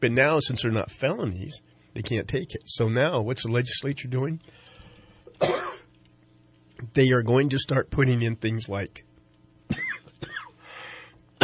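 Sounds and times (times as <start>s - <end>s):
speech: 0.0s - 4.7s, 5.4s - 5.8s, 6.8s - 9.1s
person coughing in a harsh coughing fit: 5.3s - 5.9s, 9.7s - 10.6s.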